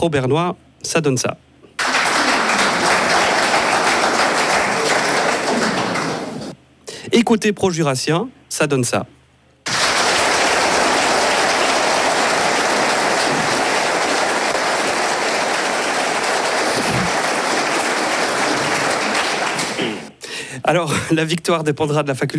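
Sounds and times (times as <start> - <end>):
speech: 0.0 - 1.5, 7.1 - 9.2, 20.7 - 22.3
large audience applauding in a debate hall: 1.8 - 6.6, 9.7 - 20.1.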